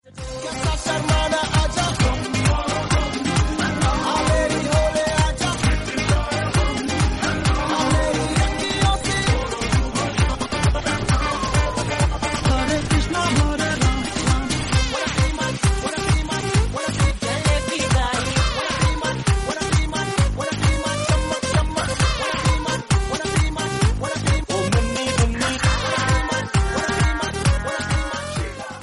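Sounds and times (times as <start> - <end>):
Bollywood remix song ringtone: 0.2 - 28.8.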